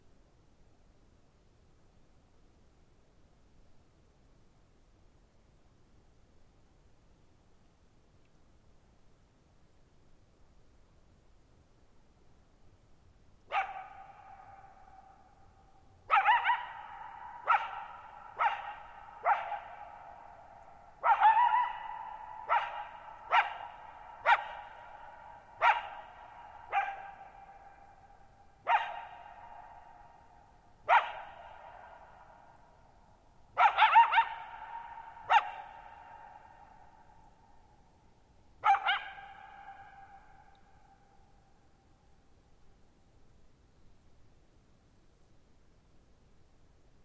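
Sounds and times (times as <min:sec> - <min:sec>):
coyote barking: 0:13.5 - 0:15.4, 0:16.1 - 0:32.4, 0:33.6 - 0:37.2, 0:38.6 - 0:40.6.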